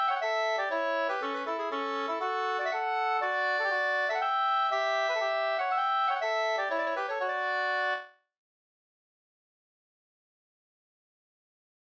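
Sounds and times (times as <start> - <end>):
polska folk dance tune: 0.0 - 8.2.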